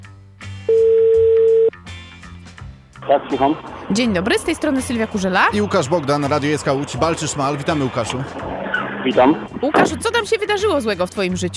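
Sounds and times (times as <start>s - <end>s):
music: 0.0s - 11.5s
telephone ringing tone: 0.7s - 1.7s
speech: 3.1s - 11.5s.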